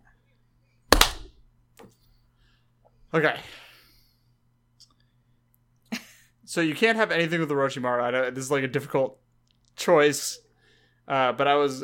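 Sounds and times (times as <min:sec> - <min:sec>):
hand clap for recording sync: 0:00.9 - 0:01.3
speech: 0:03.1 - 0:03.6, 0:06.5 - 0:09.2, 0:09.8 - 0:10.4, 0:11.1 - 0:11.8.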